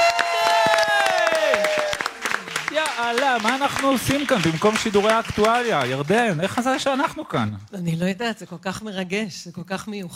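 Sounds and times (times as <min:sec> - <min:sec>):
audience applause on a live morning show: 0:00.0 - 0:07.4
speech: 0:03.0 - 0:10.1.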